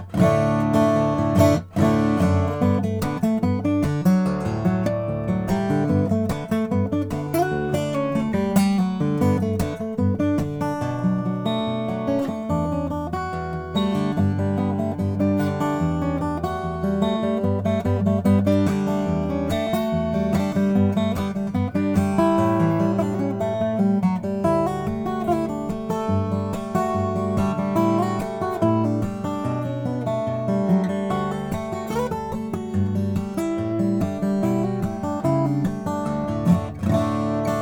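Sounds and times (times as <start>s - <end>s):
Lowden O35C Madagascar rosewood guitar: 0.0s - 37.5s.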